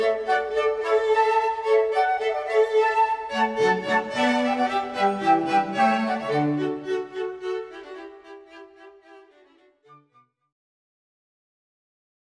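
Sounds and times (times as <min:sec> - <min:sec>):
flute quartet playing a hornpipe: 0:00.0 - 0:07.0.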